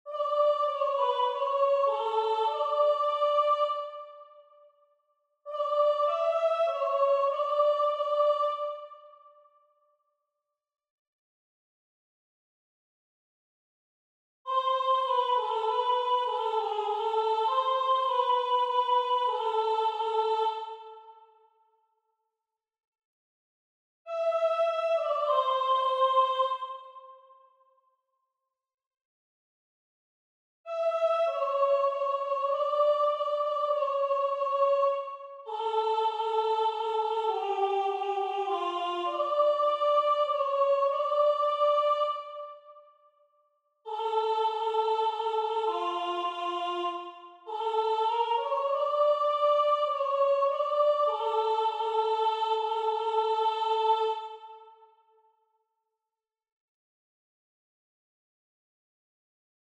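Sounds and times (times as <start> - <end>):
soprano singing: 0.0 - 4.3, 5.5 - 9.1, 14.5 - 21.1, 24.1 - 27.2, 30.7 - 42.6, 43.9 - 54.7.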